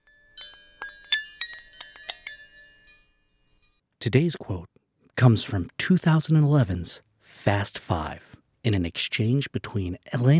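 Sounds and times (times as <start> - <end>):
wrenches clinking together: 0.0 - 3.8
speech: 4.0 - 10.3.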